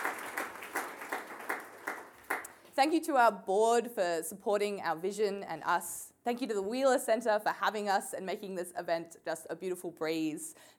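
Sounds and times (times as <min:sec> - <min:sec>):
audience applause: 0:00.0 - 0:02.5
speech: 0:02.8 - 0:10.7.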